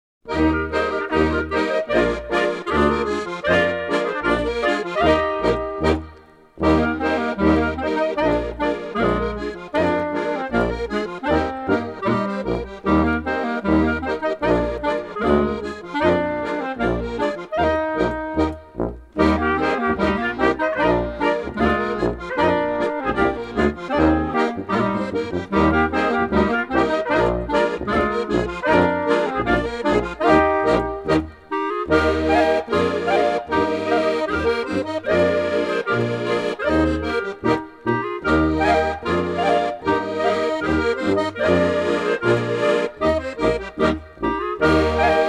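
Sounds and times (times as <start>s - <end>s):
Munich polka: 0.3s - 45.2s.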